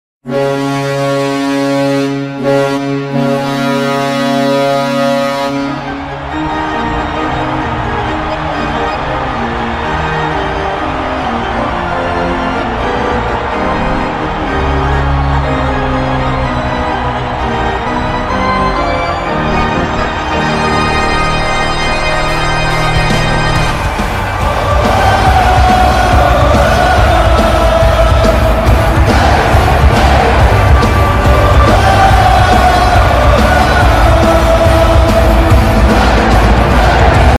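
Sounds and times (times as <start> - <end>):
goal horn: 0.2 - 37.3.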